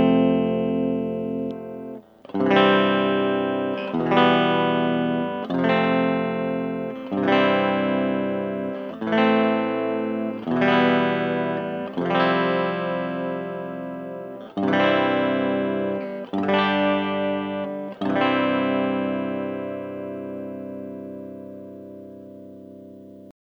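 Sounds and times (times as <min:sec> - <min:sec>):
Rickenbacker 360 Fireglo Sunburst guitar: 0:00.0 - 0:23.3.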